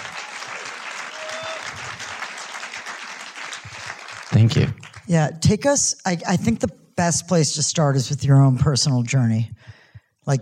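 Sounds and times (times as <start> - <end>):
audience applause: 0.0 - 5.1
speech: 4.3 - 9.7.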